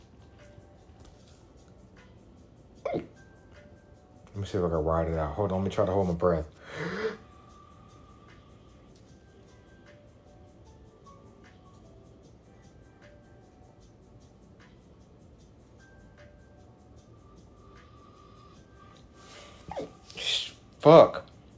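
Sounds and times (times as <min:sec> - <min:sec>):
hiccups: 0:02.8 - 0:03.2, 0:19.6 - 0:20.6
speech: 0:04.4 - 0:06.9, 0:20.8 - 0:21.2.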